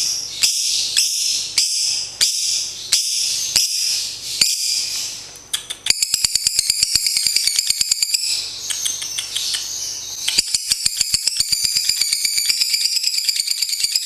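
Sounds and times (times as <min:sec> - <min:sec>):
lovebird chattering song: 0:00.0 - 0:14.0.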